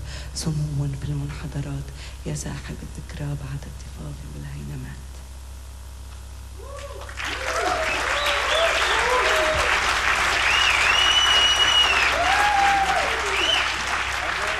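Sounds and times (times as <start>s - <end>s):
speech: 0.4s - 5.2s
audience applause after live concert: 6.6s - 14.5s.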